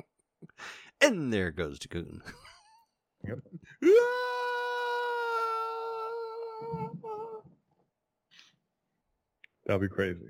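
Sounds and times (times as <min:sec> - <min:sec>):
speech: 0:00.6 - 0:02.5, 0:03.3 - 0:04.3, 0:09.7 - 0:10.2
person screaming into a microphone: 0:03.8 - 0:07.5.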